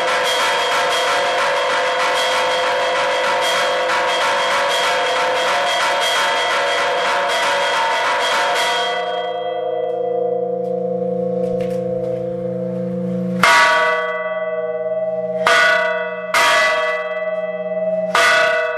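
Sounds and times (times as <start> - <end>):
celebration bells ringing: 0.0 - 18.7.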